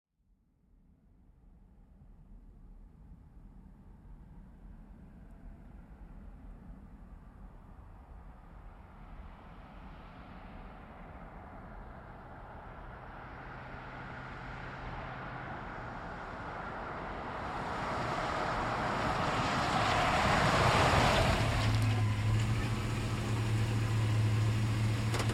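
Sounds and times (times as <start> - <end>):
GMC Savana truck driving: 11.8 - 25.3.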